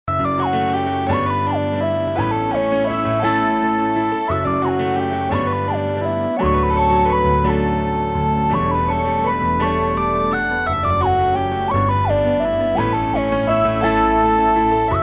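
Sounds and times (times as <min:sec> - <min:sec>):
ringtone: 0:00.1 - 0:15.0.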